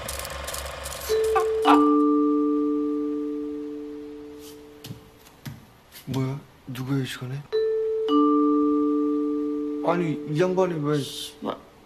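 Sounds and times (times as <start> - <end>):
mechanical clatter: 0.0 - 1.8
two-tone doorbell chime: 1.0 - 4.8, 7.5 - 11.2
speech: 1.1 - 2.0, 6.2 - 8.2, 9.9 - 11.6.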